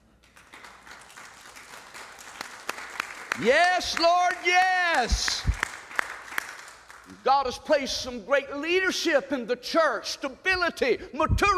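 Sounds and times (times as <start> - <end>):
audience clapping: 0.0 - 7.8
speech: 3.4 - 5.5, 7.2 - 11.5.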